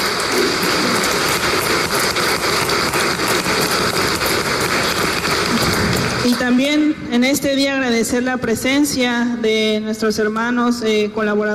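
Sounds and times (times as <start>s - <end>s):
crowd applause: 0.0s - 6.6s
speech: 7.2s - 11.5s.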